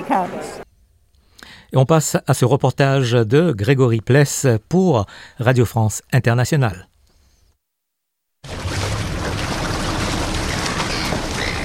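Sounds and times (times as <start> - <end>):
speech: 0.1 - 0.6, 1.7 - 6.9
ocean waves: 8.4 - 11.6
seagulls crying: 10.4 - 11.6.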